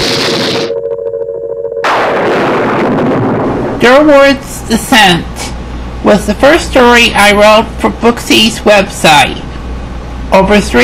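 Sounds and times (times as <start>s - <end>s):
thunderclap: 0.0s - 0.7s, 1.8s - 4.2s
speech: 3.8s - 5.3s, 6.0s - 9.5s, 10.3s - 10.8s.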